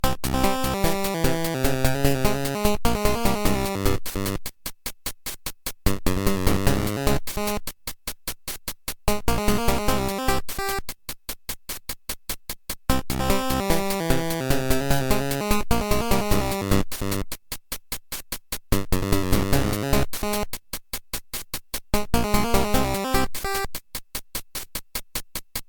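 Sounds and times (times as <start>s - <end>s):
boss level game music intro: 0.0s - 4.4s, 5.9s - 7.6s, 9.1s - 10.8s, 12.9s - 17.2s, 18.8s - 20.5s, 22.0s - 23.7s.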